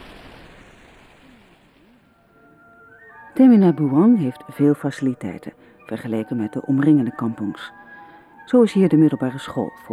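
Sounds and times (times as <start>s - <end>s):
river waterfall plunging down: 0.0s - 2.9s
speech: 3.4s - 7.8s, 8.5s - 9.9s.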